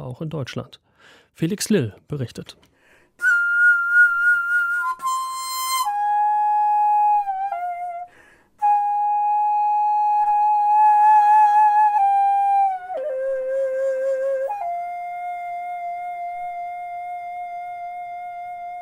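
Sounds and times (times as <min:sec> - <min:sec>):
speech: 0:00.1 - 0:03.3
Korean bamboo flute daegum melody: 0:03.2 - 0:18.7.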